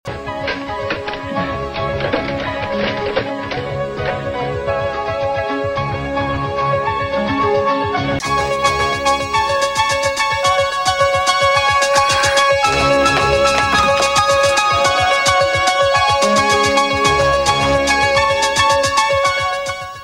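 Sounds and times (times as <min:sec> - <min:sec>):
dramatic music: 0:00.1 - 0:07.3, 0:08.1 - 0:19.1.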